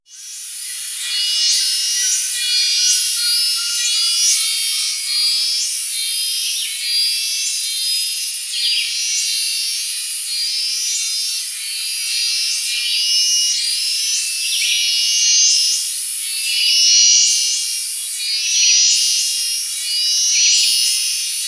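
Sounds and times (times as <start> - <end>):
several cicadas buzzing: 0.1 - 21.4.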